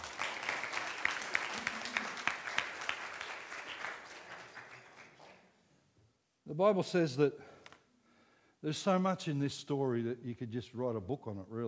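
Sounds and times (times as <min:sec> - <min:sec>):
audience applause: 0:00.0 - 0:05.4
speech: 0:06.6 - 0:07.5, 0:08.6 - 0:11.6.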